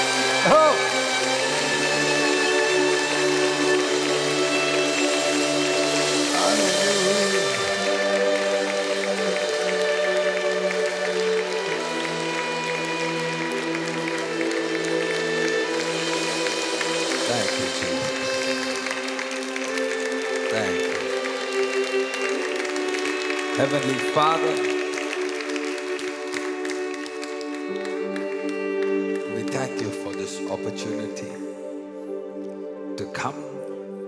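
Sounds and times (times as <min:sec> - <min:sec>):
audience clapping: 0:00.0 - 0:32.7
music playing: 0:00.0 - 0:34.0
speech: 0:23.8 - 0:24.7.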